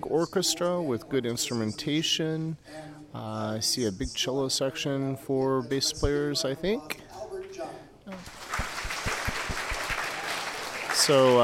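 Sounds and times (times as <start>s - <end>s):
speech: 0.1s - 8.4s, 11.1s - 11.4s
audience applause: 8.2s - 11.4s.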